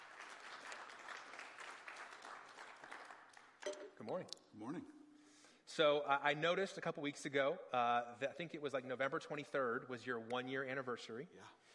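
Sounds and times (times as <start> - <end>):
round of applause: 0.0 - 3.6
speech: 4.0 - 5.0, 5.7 - 11.7.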